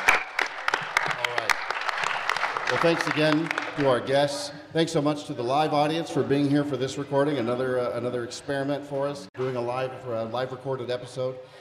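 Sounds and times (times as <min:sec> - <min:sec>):
audience applause: 0:00.0 - 0:04.1
speech: 0:02.7 - 0:11.5.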